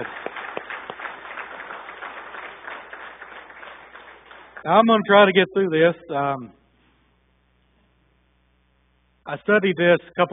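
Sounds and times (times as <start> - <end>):
audience applause: 0.0 - 4.8
speech: 4.6 - 6.6, 9.3 - 10.3.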